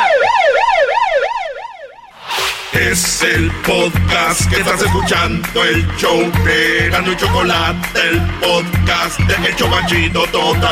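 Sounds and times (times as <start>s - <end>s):
police siren: 0.0s - 2.1s
speech: 2.9s - 10.7s.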